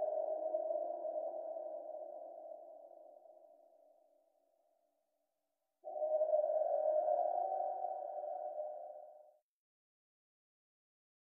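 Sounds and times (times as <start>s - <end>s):
spooky underwater ambience: 0.0s - 4.0s, 5.8s - 9.3s.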